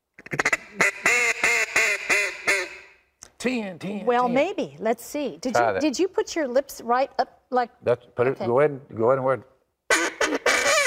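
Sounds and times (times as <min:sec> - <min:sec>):
duck call blown, quacking: 0:00.2 - 0:03.0, 0:09.9 - 0:10.8
speech: 0:00.3 - 0:00.9, 0:03.4 - 0:09.5.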